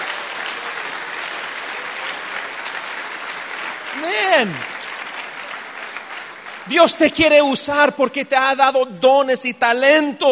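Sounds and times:
audience applause: 0.0s - 8.2s
speech: 4.0s - 4.7s, 6.7s - 10.3s.

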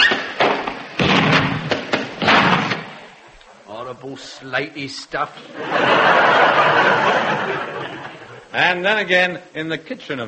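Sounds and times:
lump of uranium fuel thudding onto a household fire: 0.2s - 3.0s
speech: 3.9s - 10.2s
laughter: 5.4s - 8.5s.

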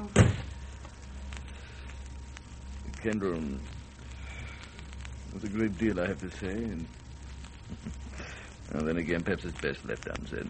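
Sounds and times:
door closing thud: 0.1s - 0.5s
speech: 3.0s - 3.8s, 5.4s - 7.0s, 7.7s - 8.0s, 8.7s - 10.4s.

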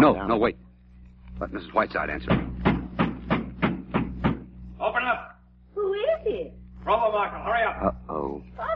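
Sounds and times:
speech: 0.0s - 0.7s, 1.4s - 2.7s, 6.3s - 8.7s
loud knocking on a door: 2.2s - 4.5s.

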